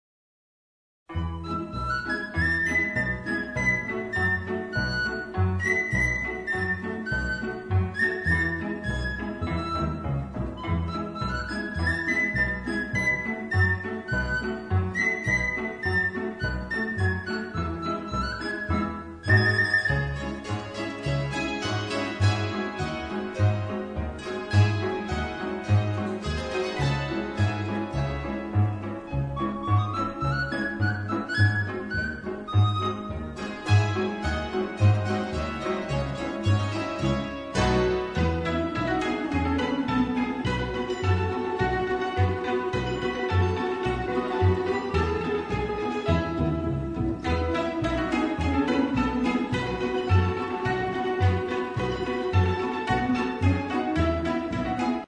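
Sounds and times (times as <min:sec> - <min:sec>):
polka music: 0:01.1 - 0:55.0.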